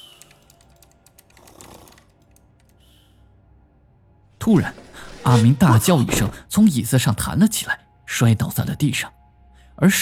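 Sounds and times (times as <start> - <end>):
computer keyboard and mouse clicking: 0.0 - 2.8
speech: 4.4 - 9.2, 9.8 - 10.0.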